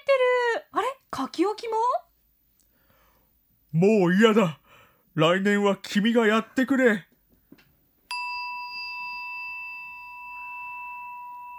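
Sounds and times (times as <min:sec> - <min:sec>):
speech: 0:00.1 - 0:02.1, 0:03.7 - 0:04.6, 0:05.2 - 0:07.1
Buddhist rin bell chime: 0:08.1 - 0:11.5.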